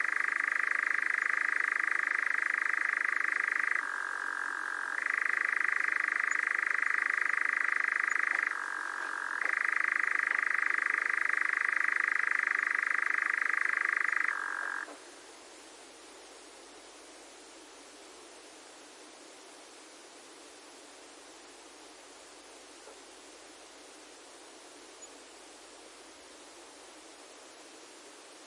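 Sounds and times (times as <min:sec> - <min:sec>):
nightjar churring: 0:00.0 - 0:14.9.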